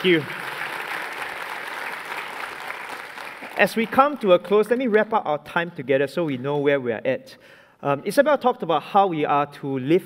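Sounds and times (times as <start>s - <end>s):
speech: 0.0s - 0.4s, 3.6s - 10.0s
audience applause after a talk at a church service: 0.0s - 4.1s.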